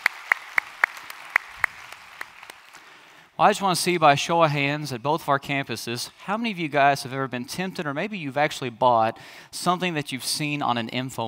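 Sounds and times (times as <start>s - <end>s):
scattered hand claps from a congregation welcoming others to a study session: 0.0s - 3.2s
speech: 3.4s - 11.2s.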